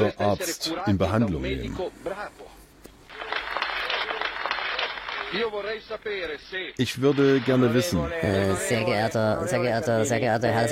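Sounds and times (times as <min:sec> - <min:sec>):
speech: 0:00.0 - 0:02.6, 0:05.3 - 0:10.7
audience applause in parliament: 0:03.1 - 0:05.6.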